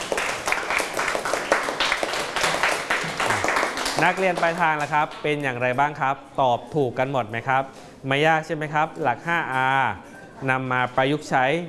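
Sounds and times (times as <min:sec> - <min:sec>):
students clapping: 0:00.0 - 0:05.2
speech: 0:04.0 - 0:11.6.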